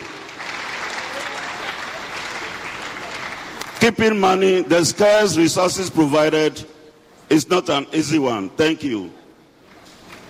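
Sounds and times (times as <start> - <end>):
crowd applause for an honoree at a public event: 0.0 - 3.8
speech: 3.8 - 6.7, 7.3 - 9.2.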